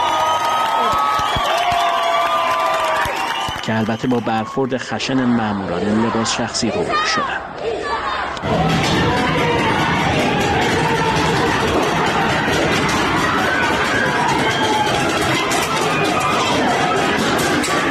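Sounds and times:
crowd cheering and yelling: 0.0 - 17.8
speech: 3.7 - 7.8
street protesters chanting slogans: 5.5 - 17.8.

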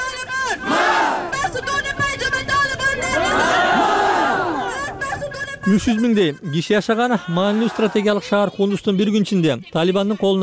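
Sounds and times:
hundreds of protesters in Kabul shouting death to the Taliban: 0.0 - 5.3, 7.0 - 8.7
speech: 5.7 - 10.4.

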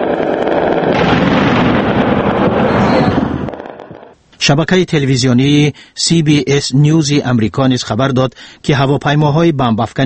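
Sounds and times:
anti-aircraft gunfire at night: 0.0 - 4.2
speech: 4.5 - 10.0.

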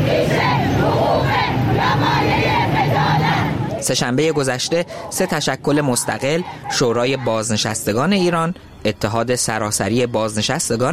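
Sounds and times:
large protest crowd chanting in unison: 0.0 - 8.4
speech: 3.8 - 10.9.

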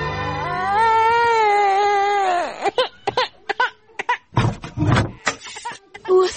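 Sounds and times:
baby crying in a radio drama: 0.2 - 4.4, 5.2 - 6.3
choppy talk: 4.8 - 6.3.

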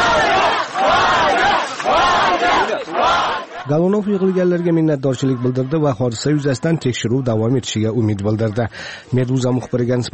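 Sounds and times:
crowd of colleagues and activists cheering outside the Interior Ministry in Moscow: 0.0 - 7.5
speech: 3.7 - 10.1.

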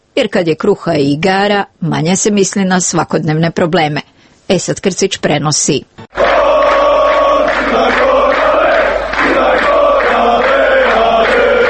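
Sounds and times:
speech: 0.2 - 6.0
football fans cheering and chanting at a European Championship qualifying match: 6.1 - 11.6.

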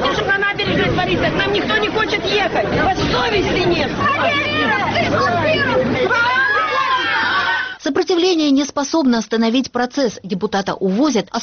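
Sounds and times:
angry crowd shouting: 0.0 - 7.8
speech: 1.1 - 6.4, 7.8 - 11.4.

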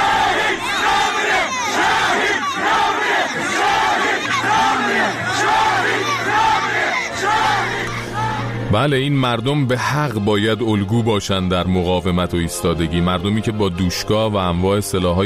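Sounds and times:
crowd chanting slogans: 0.0 - 8.7
speech: 8.7 - 15.2.

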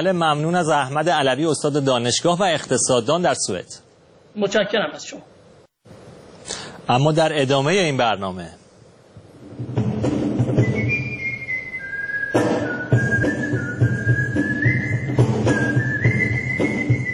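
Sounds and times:
speech: 0.0 - 8.6
whistled melody by performers at a whistlers' gathering in Japan: 10.5 - 17.1.

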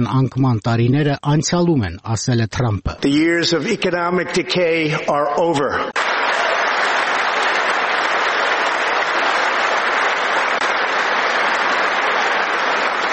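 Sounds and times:
speech: 0.0 - 6.0
Republican lawmakers clapping in a standing ovation during a presidential address: 5.9 - 13.1.

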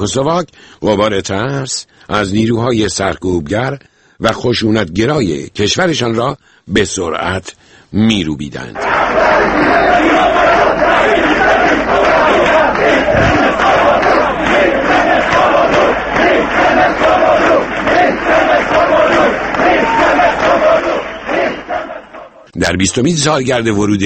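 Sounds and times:
speech: 0.0 - 11.2, 22.6 - 24.0
large crowd chanting slogans: 8.8 - 22.5.

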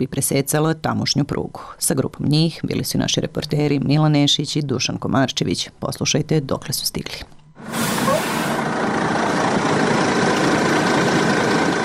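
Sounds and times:
speech: 0.0 - 7.9
bus carrying about 80 migrants idling near Horgoš border crossing: 7.6 - 11.8
broad hiss: 7.7 - 8.6.

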